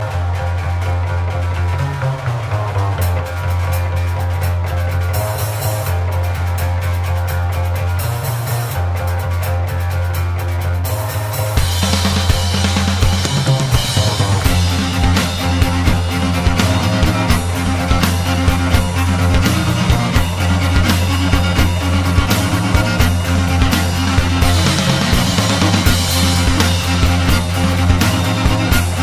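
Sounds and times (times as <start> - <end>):
folk metal music: 0.0 - 29.0.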